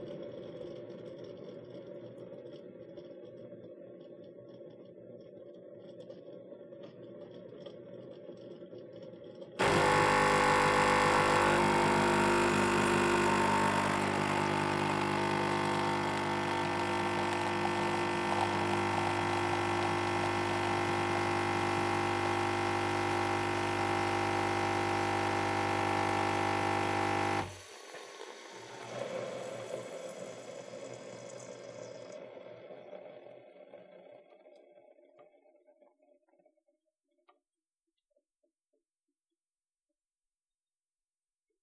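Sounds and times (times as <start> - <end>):
coffee machine: 9.6 - 32.2.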